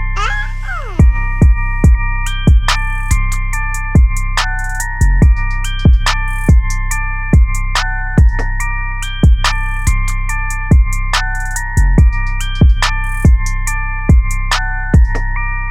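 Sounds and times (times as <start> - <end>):
instrumental type beat: 0.2 - 15.5.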